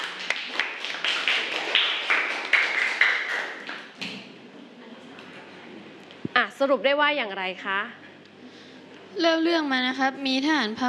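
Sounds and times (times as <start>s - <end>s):
students clapping: 0.0s - 4.3s
speech: 6.6s - 8.0s, 9.2s - 10.8s.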